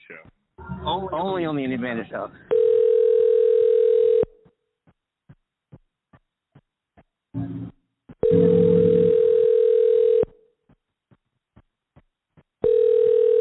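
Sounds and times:
speech: 0.1 - 2.5
telephone ringback tone: 2.5 - 4.3, 8.2 - 10.3, 12.6 - 13.3.

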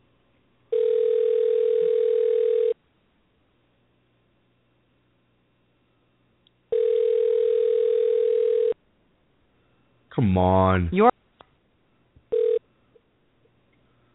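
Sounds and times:
telephone ringback tone for an unanswered call: 0.7 - 2.8, 6.7 - 8.8, 12.3 - 12.6
faint click: 6.4 - 6.6
speech: 10.2 - 11.1.

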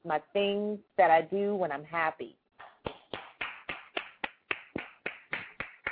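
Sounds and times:
speech: 0.0 - 2.4
hands clapping: 2.6 - 5.9.

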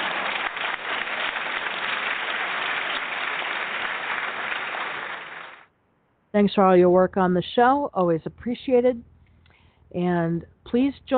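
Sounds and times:
small crowd birthday applause: 0.0 - 5.7
speech: 6.4 - 9.1, 9.9 - 11.1.

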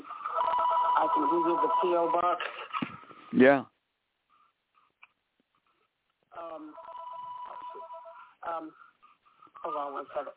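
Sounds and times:
phones ringing: 0.0 - 2.5, 6.4 - 8.4
speech: 1.0 - 2.7, 3.3 - 3.7, 8.4 - 8.8, 9.6 - 10.3.

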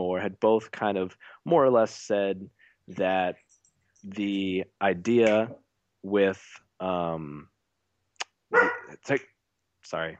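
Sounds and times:
speech: 0.2 - 3.4, 4.0 - 7.5, 8.5 - 10.1
dog barking: 8.5 - 9.0.

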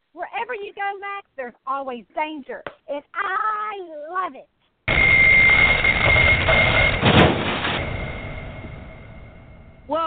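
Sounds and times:
speech: 0.5 - 4.6, 9.9 - 10.0
Ferris wheel loud clanking: 4.9 - 9.7
huge Ferris wheel high metallic squeal: 4.9 - 9.9.

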